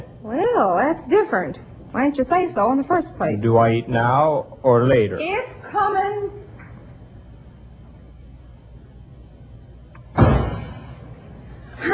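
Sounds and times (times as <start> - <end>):
speech: 0.2 - 6.4
door banged shut: 10.1 - 11.1.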